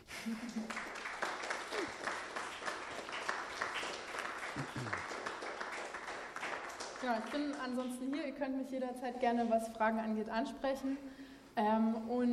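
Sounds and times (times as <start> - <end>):
audience applause: 0.0 - 7.9
speech: 0.2 - 0.8, 7.0 - 12.3.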